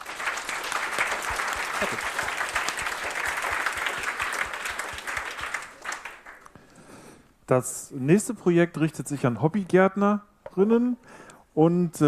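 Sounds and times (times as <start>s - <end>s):
audience applause: 0.0s - 6.5s
speech: 1.8s - 2.2s, 7.5s - 12.0s.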